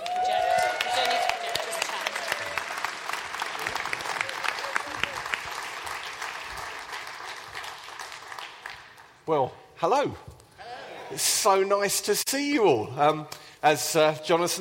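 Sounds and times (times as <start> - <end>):
church congregation applauding to welcome a visiting speaker at Hope Central: 0.0 - 9.2
speech: 9.3 - 10.3, 11.1 - 14.5.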